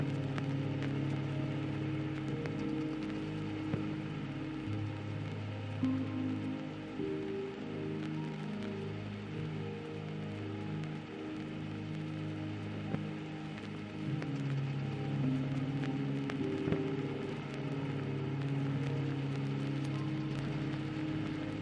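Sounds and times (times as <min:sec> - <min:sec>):
soft slow ambient music: 0:00.0 - 0:21.6
vinyl crackle and static: 0:00.0 - 0:21.6.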